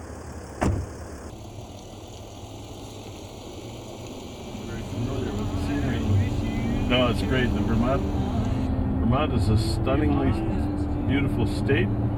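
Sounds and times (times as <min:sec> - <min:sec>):
Mercedes SUV engine rumble driving off: 0:00.0 - 0:08.9
thump: 0:00.6 - 0:01.0
speech: 0:06.9 - 0:08.2, 0:09.1 - 0:12.0.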